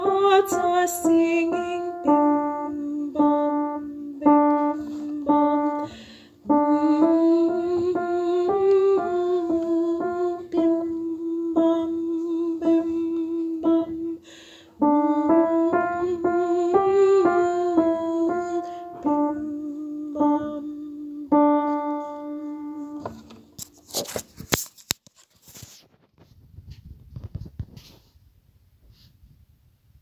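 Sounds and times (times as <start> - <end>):
soprano singing: 0.0 - 23.5.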